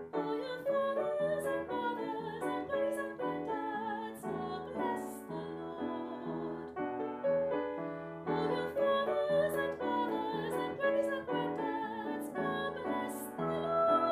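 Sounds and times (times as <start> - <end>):
person singing: 0.2 - 7.0, 8.3 - 14.1.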